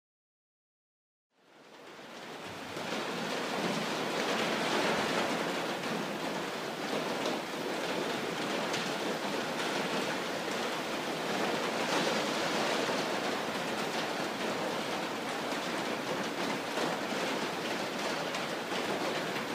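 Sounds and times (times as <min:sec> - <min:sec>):
rain: 0:01.4 - 0:19.5.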